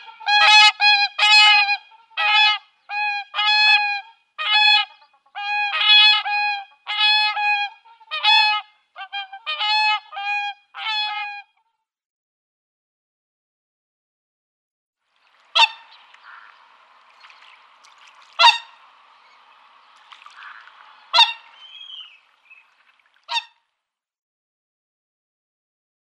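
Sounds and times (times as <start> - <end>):
whooper swan honking and trumpeting: 0.0 - 11.5, 15.2 - 23.6.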